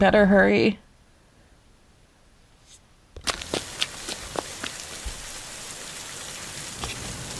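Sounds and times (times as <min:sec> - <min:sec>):
rain storm: 0:03.2 - 0:07.3.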